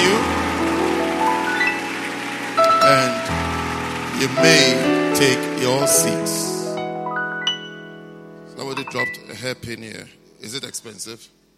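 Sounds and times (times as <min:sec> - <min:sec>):
audience clapping: 0:00.0 - 0:06.7
speech: 0:02.9 - 0:03.3, 0:04.2 - 0:06.5, 0:08.8 - 0:11.4.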